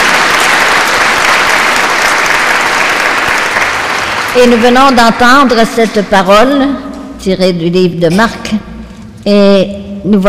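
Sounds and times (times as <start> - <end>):
audience applause: 0.0 - 5.4
speech: 4.4 - 10.2.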